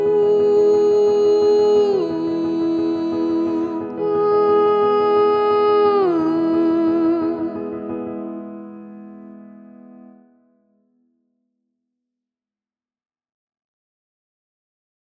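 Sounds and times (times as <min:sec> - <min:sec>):
woman's voice: 0:00.0 - 0:07.9.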